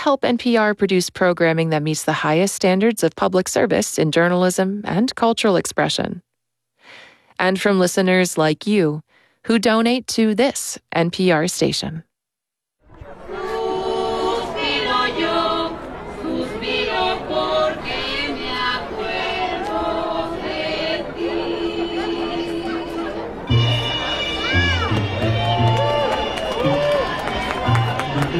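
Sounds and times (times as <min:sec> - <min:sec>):
speech: 0:00.0 - 0:06.3, 0:06.9 - 0:12.1
crowd chatter at a Dia de los Muertos celebration in downtown Carbondale: 0:12.9 - 0:28.3
singing or music: 0:12.9 - 0:28.3.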